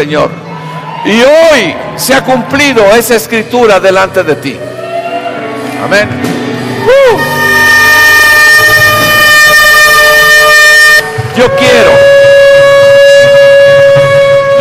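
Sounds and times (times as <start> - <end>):
speech: 0.0 - 4.8, 5.8 - 7.4, 11.4 - 12.0
trumpet blast: 6.9 - 14.6.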